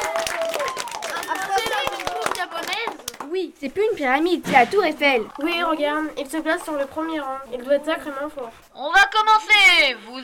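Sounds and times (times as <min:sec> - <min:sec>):
audience applause: 0:00.0 - 0:03.3
speech: 0:03.4 - 0:10.2.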